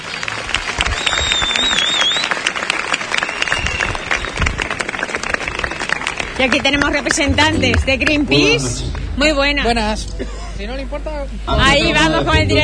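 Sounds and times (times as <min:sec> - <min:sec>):
audience applause: 0:00.0 - 0:09.4
speech: 0:06.4 - 0:12.6.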